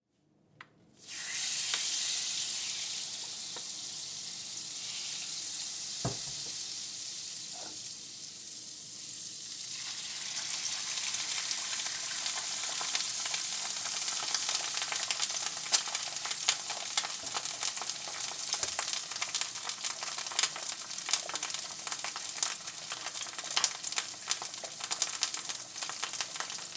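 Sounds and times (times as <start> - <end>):
egg frying: 1.0 - 26.7.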